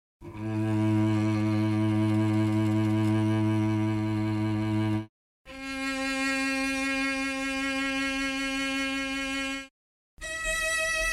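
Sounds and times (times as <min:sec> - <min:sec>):
cello: 0:00.2 - 0:11.1.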